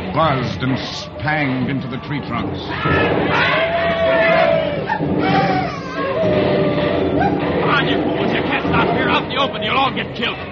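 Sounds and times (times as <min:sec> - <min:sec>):
speech: 0:00.2 - 0:06.5, 0:07.8 - 0:10.5
soldiers charging with battle cries: 0:02.7 - 0:09.7.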